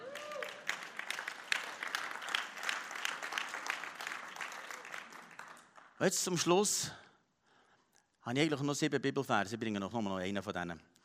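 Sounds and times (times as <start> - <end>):
audience clapping: 0.0 - 6.6
speech: 6.0 - 7.0, 8.3 - 10.9.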